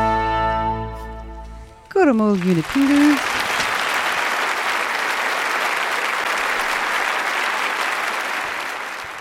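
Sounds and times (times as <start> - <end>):
speech: 2.0 - 3.3
audience applause: 2.0 - 9.1.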